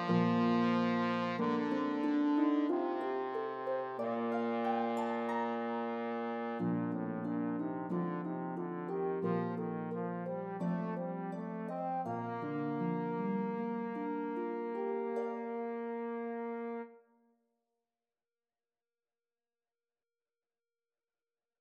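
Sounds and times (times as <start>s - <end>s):
harp melody: 0.0s - 16.8s
trombone: 0.0s - 16.9s.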